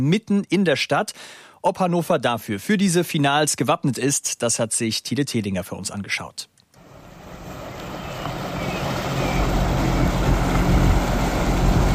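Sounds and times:
speech: 0.0 - 6.5
tugboats towing floating stage across Maschsee lake: 6.8 - 11.9.

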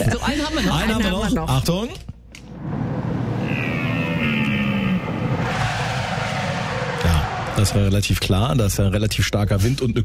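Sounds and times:
speech: 0.6 - 2.7, 7.6 - 10.0
car emergency braking: 2.6 - 7.9.

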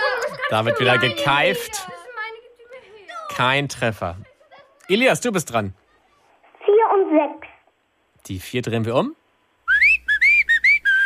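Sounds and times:
laughter: 0.0 - 2.1, 4.2 - 4.9
speech: 0.5 - 2.0, 3.4 - 4.3, 4.9 - 5.8, 6.9 - 7.5, 8.2 - 9.2
cheerful human whistling: 9.7 - 11.0.

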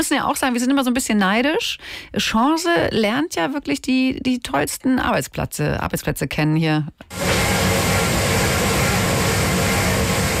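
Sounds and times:
speech: 0.0 - 7.6
dishwasher running: 7.1 - 10.3.

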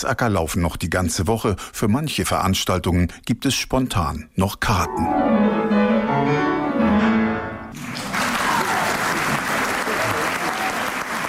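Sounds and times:
speech: 0.0 - 7.2
concert audience applause at the Sommerliche Musiktage in Hitzacker: 7.7 - 11.2.

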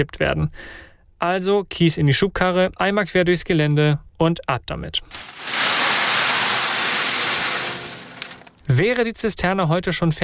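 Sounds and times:
speech: 0.0 - 5.6, 8.7 - 10.2
rain pattering down: 5.1 - 8.8.

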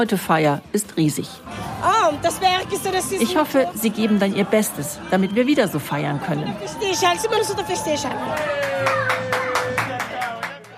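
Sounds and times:
speech: 0.0 - 9.3
crowd applause and cheering: 6.3 - 10.7.

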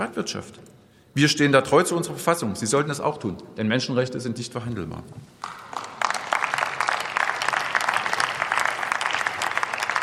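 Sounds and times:
speech: 0.0 - 5.6
applause: 5.4 - 10.0.

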